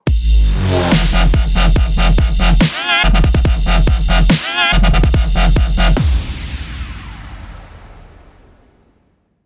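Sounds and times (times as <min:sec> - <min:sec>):
dubstep music: 0:00.0 - 0:07.1.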